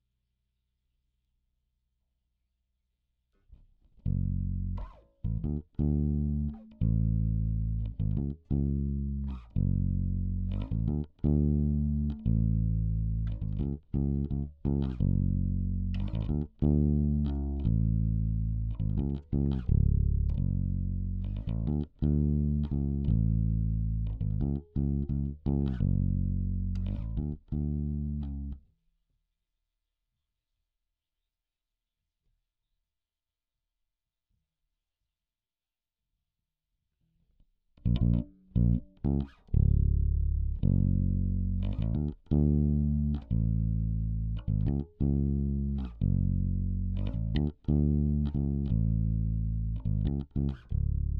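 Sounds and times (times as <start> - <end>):
bass guitar recorded by direct input: 3.9 - 28.6, 37.8 - 51.1.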